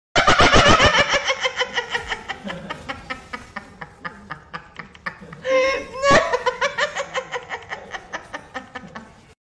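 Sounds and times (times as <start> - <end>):
person laughing: 0.2 - 9.1.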